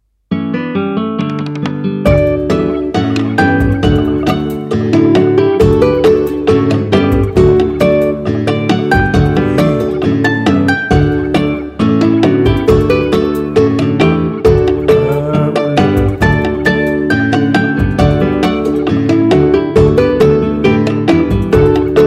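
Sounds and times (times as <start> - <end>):
acoustic music: 0.3 - 22.0.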